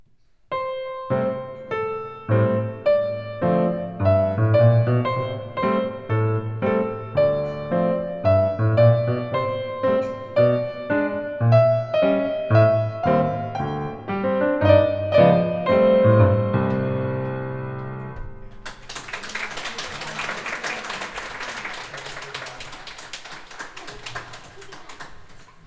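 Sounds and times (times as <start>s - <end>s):
jazz walk recital: 0.5s - 18.6s.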